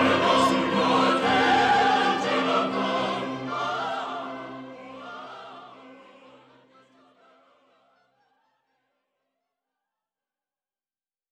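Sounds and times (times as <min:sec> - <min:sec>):
bell chorus: 0:00.0 - 0:06.4.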